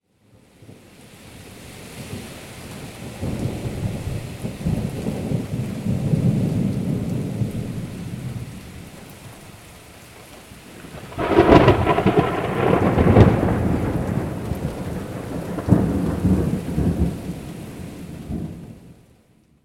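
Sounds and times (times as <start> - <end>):
thunderstorm: 2.0 - 9.0, 10.7 - 19.0.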